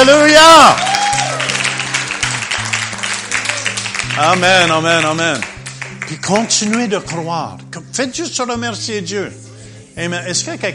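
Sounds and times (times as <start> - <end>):
crowd clapping: 0.0 - 7.3
speech: 0.1 - 0.9, 4.2 - 5.5, 6.1 - 9.4, 10.0 - 10.7
sustained low musical chords: 1.2 - 10.7.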